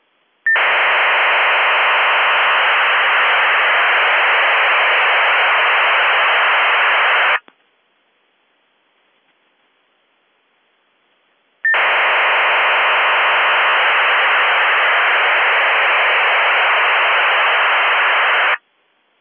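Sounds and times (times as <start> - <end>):
RFSM 2400 baud data signal: 0.5 - 7.4, 11.7 - 18.6.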